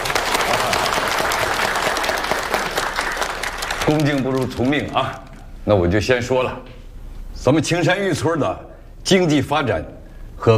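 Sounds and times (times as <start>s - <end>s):
audience applause: 0.0s - 5.1s
speech: 3.9s - 6.8s, 7.4s - 10.5s.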